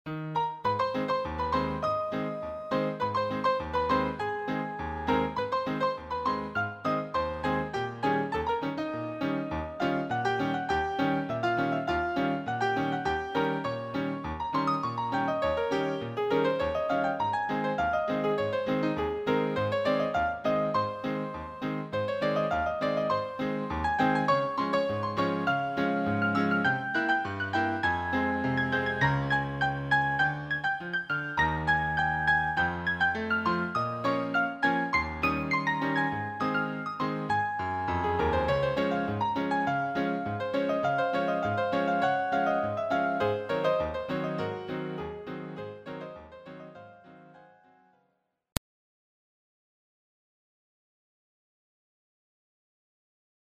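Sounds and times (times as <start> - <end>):
ragtime music: 0.1 - 47.2.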